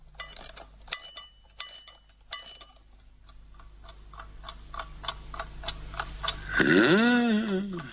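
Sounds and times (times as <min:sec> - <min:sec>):
wound-up watch ticking: 0:00.2 - 0:06.5
person speaking: 0:06.4 - 0:07.9.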